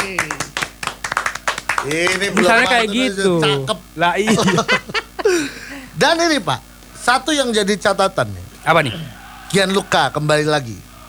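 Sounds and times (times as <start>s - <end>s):
hand clapping: 0.0s - 2.7s
speech: 1.8s - 5.0s, 6.0s - 11.0s
laughter: 2.1s - 5.9s, 8.6s - 11.0s.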